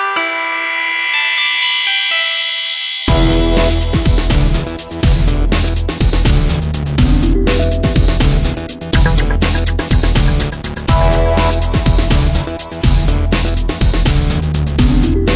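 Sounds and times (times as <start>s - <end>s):
lo-fi techno music: 0.1s - 15.3s.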